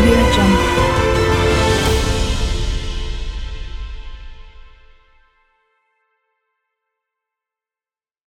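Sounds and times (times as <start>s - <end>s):
epic background music: 0.0s - 5.2s.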